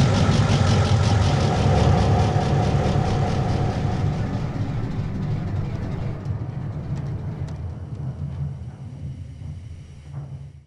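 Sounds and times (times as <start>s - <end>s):
EMD 567-16 diesel locomotive engine: 0.0s - 9.9s.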